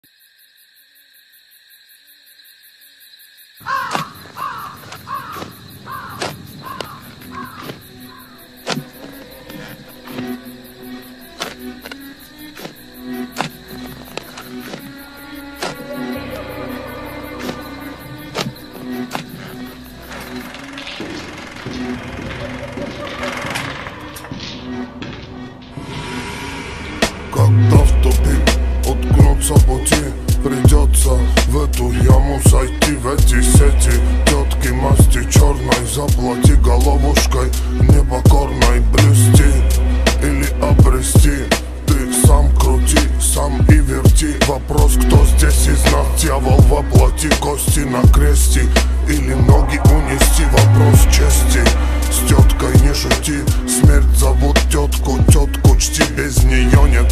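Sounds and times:
slowed reverb music: 0:24.3 - 0:57.1.

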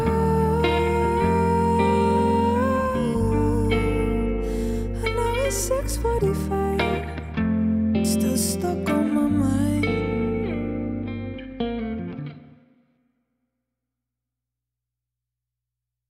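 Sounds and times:
acoustic music: 0:00.0 - 0:12.7.

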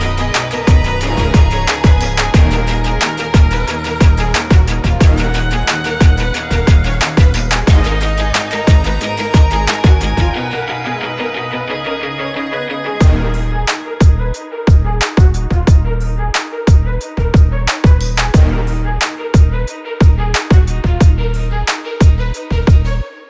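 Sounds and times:
hard motivational epic rock type hip hop instrumental beat: 0:00.0 - 0:23.2.

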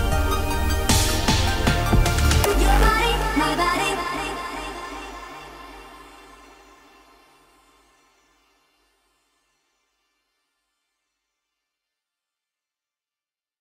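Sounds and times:
hardstyle remix: 0:00.0 - 0:07.6.

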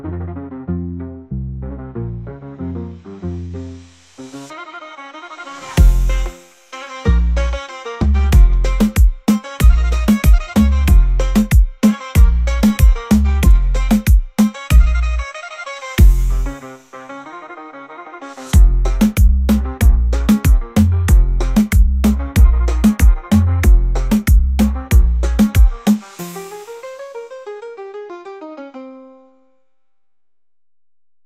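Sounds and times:
reggaeton bass: 0:00.0 - 0:04.1, 0:05.7 - 0:15.3, 0:16.0 - 0:16.7, 0:18.5 - 0:26.6.

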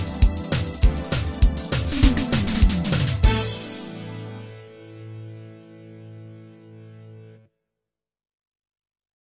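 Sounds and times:
Turkmen songs karaoke backing track: 0:00.0 - 0:04.4.

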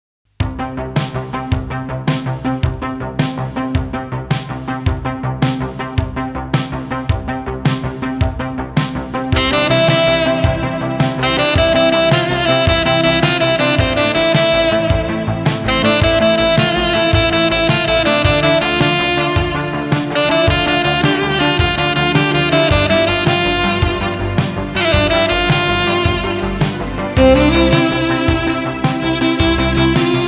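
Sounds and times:
saxophone: 0:00.5 - 0:30.2
violin: 0:27.2 - 0:30.2.

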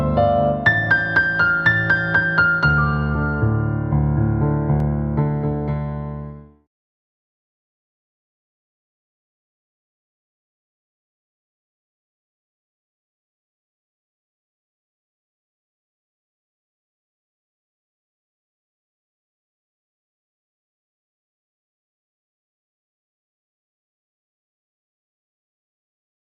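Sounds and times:
karaoke piano: 0:00.0 - 0:06.6.

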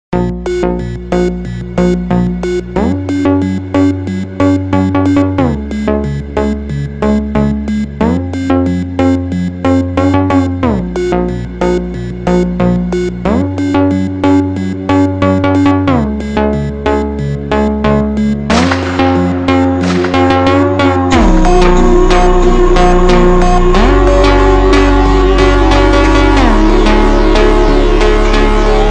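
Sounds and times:
super slowed music with reverb: 0:00.2 - 0:28.8.

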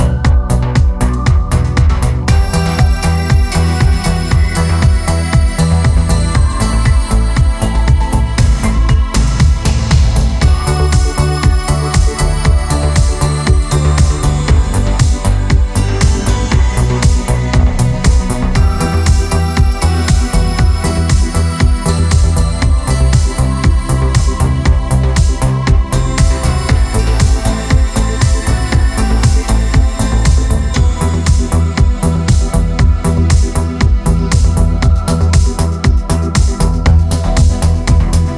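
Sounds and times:
keyboard modern beat: 0:00.0 - 0:38.3.

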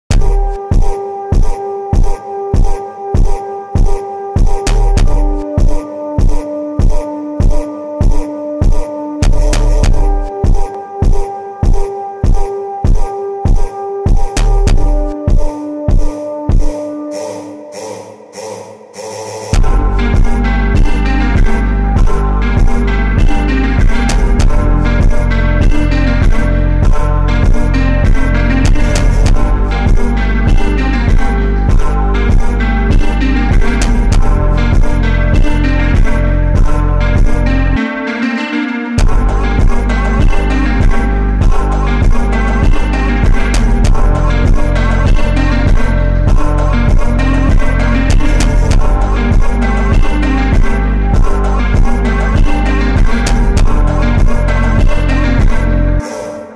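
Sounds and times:
super slowed funk music: 0:00.1 - 0:18.0, 0:19.0 - 0:56.5.

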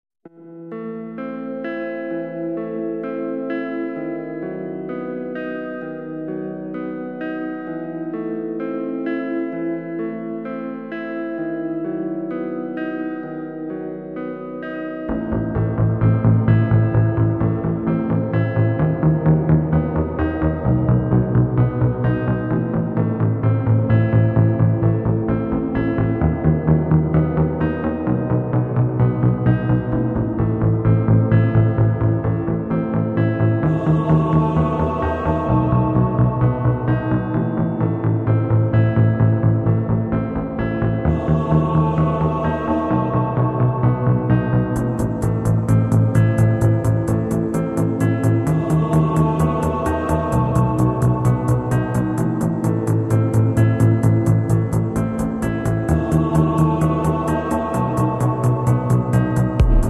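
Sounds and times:
slowed reverbed music: 0:00.3 - 0:59.8.

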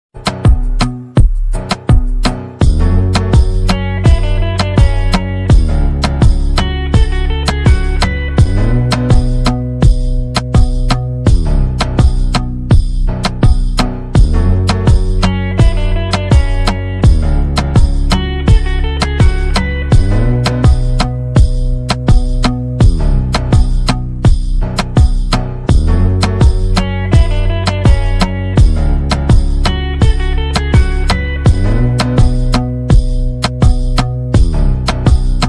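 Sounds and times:
slowed instrumental music: 0:00.2 - 0:35.4.

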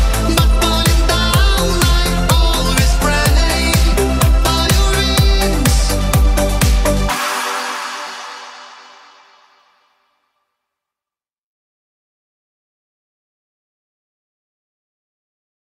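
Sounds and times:
euro dance euro disco music: 0:00.0 - 0:10.0.

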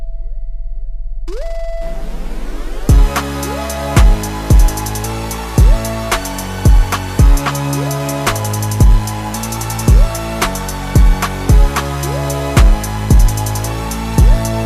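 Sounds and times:
slowed instrumental music with reverb: 0:02.3 - 0:14.6.

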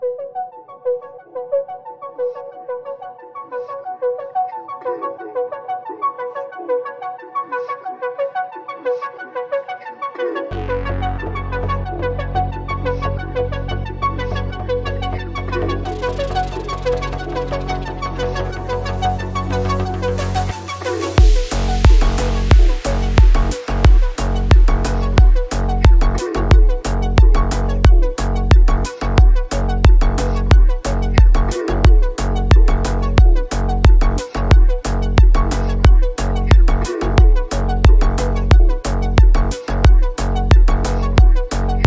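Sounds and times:
boosted bass: 0:10.5 - 0:41.8.

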